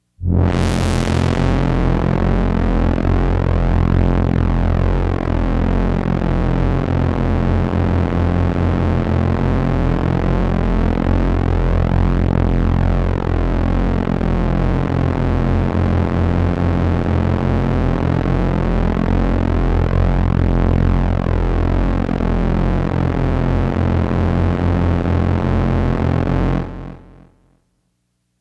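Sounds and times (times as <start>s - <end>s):
drone: 0.0s - 27.4s.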